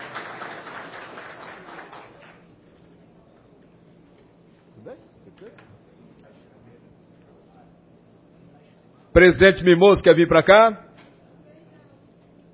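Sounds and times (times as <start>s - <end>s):
crowd applause: 0.0s - 2.5s
speech: 4.9s - 5.9s, 9.2s - 10.8s.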